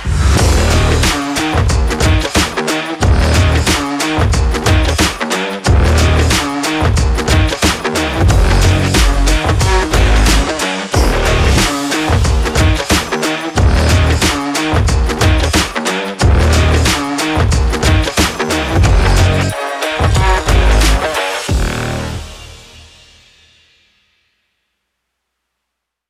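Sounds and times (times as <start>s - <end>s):
sports trailer beat: 0.0s - 23.3s.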